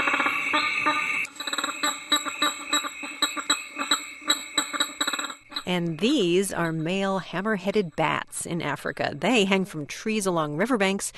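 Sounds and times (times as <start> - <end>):
male prairie chickens snorting through air sacs: 0.0 - 5.8
high whining tone: 0.0 - 6.4
speech: 5.7 - 11.1.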